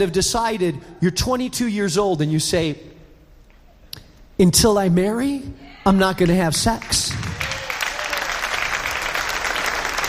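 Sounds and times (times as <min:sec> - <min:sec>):
speech: 0:00.0 - 0:02.9, 0:04.4 - 0:07.2
audience clapping: 0:06.2 - 0:10.0.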